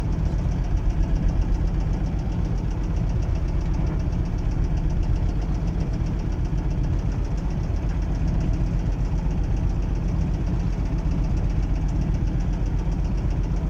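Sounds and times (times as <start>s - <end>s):
fishing boat engine idling: 0.0s - 13.6s.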